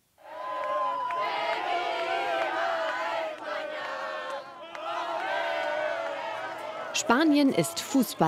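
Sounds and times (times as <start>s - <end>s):
football fans cheering after victory: 0.2s - 8.2s
speech: 7.0s - 8.2s.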